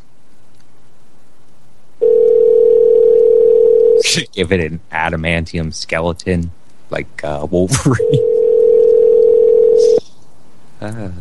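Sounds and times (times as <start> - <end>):
telephone dial tone after a hang-up: 2.0 - 4.0, 8.1 - 10.0
speech: 4.1 - 8.3, 10.8 - 11.2.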